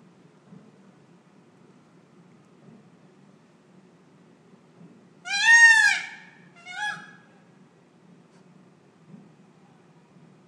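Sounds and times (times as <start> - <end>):
unidentified birds calling at night in Lisbon: 5.3 - 7.2.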